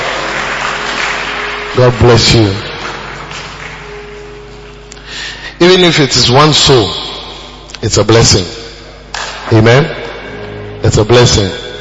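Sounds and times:
people clapping: 0.0s - 4.6s, 9.1s - 9.9s
speech: 1.8s - 2.7s, 5.7s - 7.1s, 7.8s - 8.6s, 9.5s - 10.0s, 10.8s - 11.6s.

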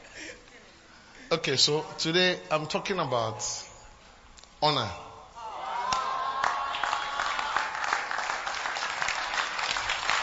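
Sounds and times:
speech: 1.3s - 3.6s, 4.6s - 5.0s
audience clapping: 5.8s - 10.2s.

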